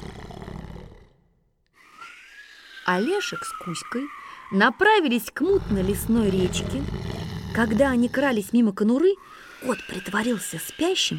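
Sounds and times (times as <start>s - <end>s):
loud deep rumbling snore with whistling breath out: 0.0s - 1.3s, 5.5s - 8.6s
speech: 2.9s - 11.1s.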